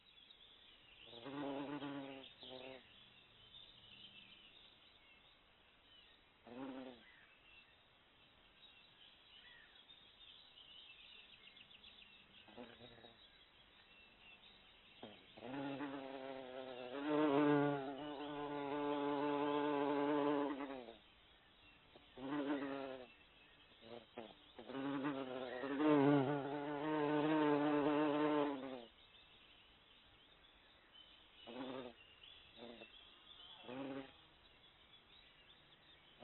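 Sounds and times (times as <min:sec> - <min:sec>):
bee buzzing: 0:01.2 - 0:02.8, 0:15.0 - 0:21.0, 0:22.2 - 0:23.1, 0:23.9 - 0:28.8, 0:33.7 - 0:34.2.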